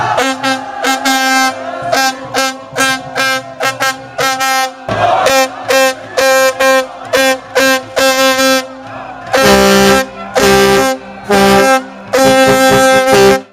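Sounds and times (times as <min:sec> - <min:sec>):
foghorn on the Champs-Élysées in Paris: 0:00.2 - 0:13.5.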